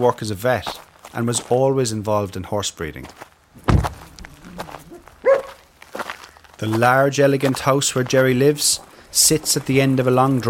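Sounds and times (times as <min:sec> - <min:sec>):
speech: 0:00.0 - 0:03.3, 0:06.6 - 0:10.4
soft thumps: 0:03.6 - 0:05.5
dog barking: 0:04.8 - 0:05.6.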